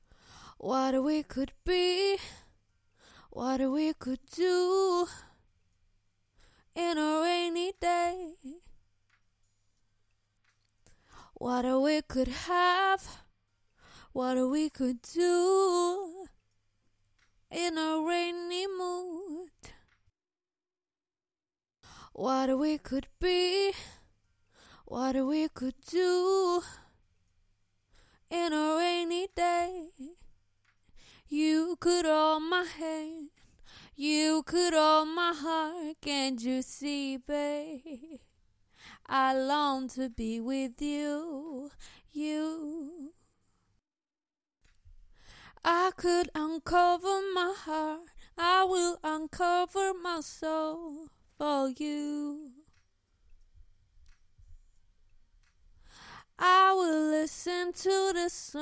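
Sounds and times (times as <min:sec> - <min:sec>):
a cappella pop singing in B-flat minor: 0:00.4 - 0:02.5, 0:03.2 - 0:05.4, 0:06.7 - 0:08.7, 0:11.2 - 0:13.3, 0:14.0 - 0:16.4, 0:17.5 - 0:19.8, 0:22.0 - 0:24.0, 0:24.8 - 0:26.9, 0:28.3 - 0:30.3, 0:31.0 - 0:38.2, 0:38.9 - 0:43.2, 0:45.5 - 0:52.7, 0:56.0 - 0:58.5.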